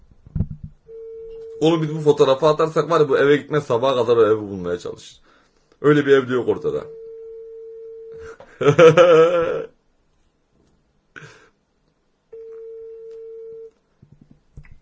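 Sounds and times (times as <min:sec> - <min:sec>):
ringback tone of an outgoing phone call: 0:00.9 - 0:01.8, 0:06.8 - 0:08.3, 0:12.4 - 0:13.7
speech: 0:01.6 - 0:05.2, 0:05.8 - 0:07.0, 0:08.2 - 0:09.7
laughter: 0:08.4 - 0:09.7
person clearing throat: 0:09.0 - 0:09.7.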